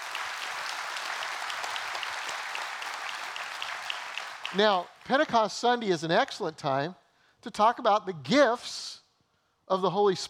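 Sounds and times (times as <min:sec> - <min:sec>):
church congregation applause at a Pentecost Sunday service: 0:00.0 - 0:05.5
speech: 0:04.5 - 0:09.0, 0:09.7 - 0:10.2.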